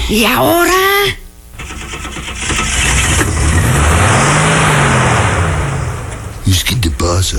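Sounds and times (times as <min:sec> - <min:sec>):
speech: 0:00.1 - 0:01.2
car engine starting and revving after repair: 0:01.5 - 0:07.3.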